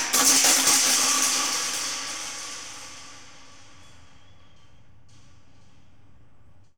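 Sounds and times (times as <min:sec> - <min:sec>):
thrash metal: 0:00.0 - 0:03.9.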